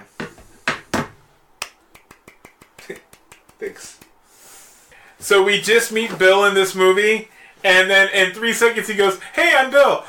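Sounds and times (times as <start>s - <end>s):
slow sarcastic hand clapping: 1.6s - 4.2s
speech: 2.9s - 4.1s, 5.2s - 10.0s.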